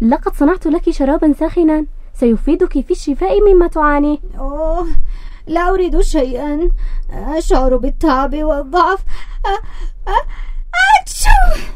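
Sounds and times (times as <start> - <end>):
speech: 0.0 - 11.7
woman with a heavy cold gasping: 9.0 - 10.7.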